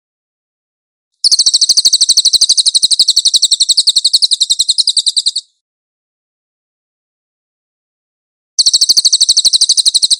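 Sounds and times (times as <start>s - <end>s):
singing: 1.2s - 5.5s, 8.6s - 10.1s.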